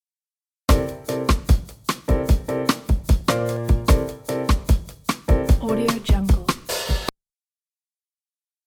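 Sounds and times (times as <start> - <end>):
Brazilian jazz arrangement: 0.7 - 7.1.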